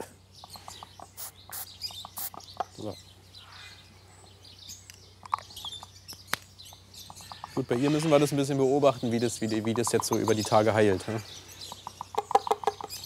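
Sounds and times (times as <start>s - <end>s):
birds chirping: 0.0s - 13.0s
speech: 2.8s - 3.1s, 7.6s - 11.5s.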